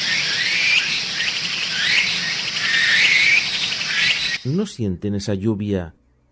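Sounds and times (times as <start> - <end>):
mosquitoes droning in the Amazon jungle: 0.0 - 4.6
bird calls in short whistling chirps in the Amazon jungle: 0.0 - 4.7
speech: 4.4 - 6.0.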